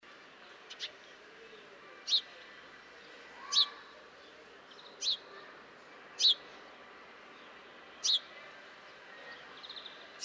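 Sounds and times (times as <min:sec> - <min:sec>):
house sparrow Passer domesticus chirping: 0:04.7 - 0:05.2, 0:08.0 - 0:08.3, 0:09.6 - 0:10.2.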